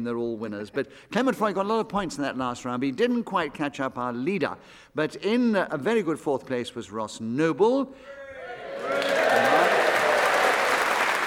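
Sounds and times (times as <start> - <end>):
speech: 0.0 - 8.2
audience applause: 8.4 - 11.2.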